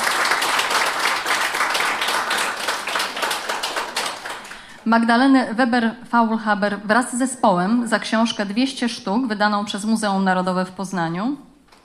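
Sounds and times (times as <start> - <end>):
audience applause: 0.0 - 4.8
speech: 4.8 - 11.8.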